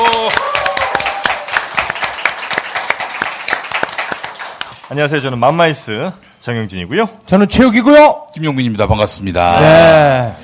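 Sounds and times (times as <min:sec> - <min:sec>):
audience applause: 0:00.0 - 0:05.1
speech: 0:04.9 - 0:10.4.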